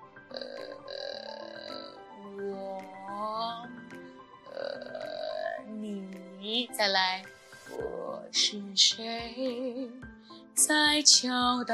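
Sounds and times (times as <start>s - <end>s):
creaky vocal fry demonstration: 0.3s - 5.7s
speech: 6.8s - 7.3s, 8.4s - 10.0s, 10.6s - 11.7s.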